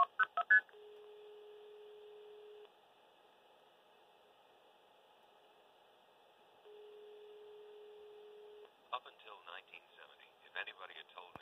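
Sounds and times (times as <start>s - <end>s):
blue box tone bursts on a PhilTel payphone: 0.8s - 2.6s, 6.7s - 8.6s
muffled speech over a telephone line: 9.0s - 11.4s.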